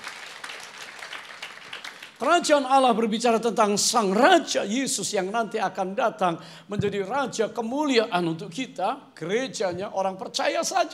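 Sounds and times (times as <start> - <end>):
crowd clapping: 0.0 - 2.4
speech: 2.2 - 10.9.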